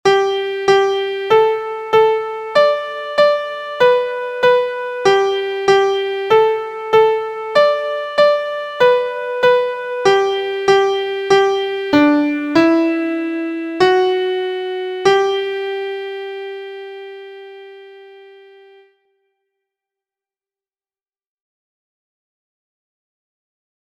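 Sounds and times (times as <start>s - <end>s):
MIDI music: 0.0s - 18.8s.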